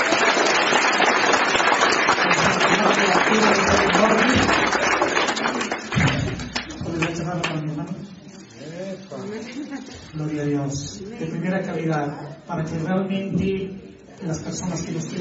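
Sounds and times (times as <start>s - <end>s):
audience applause: 0.0s - 7.6s
speech: 11.6s - 15.1s.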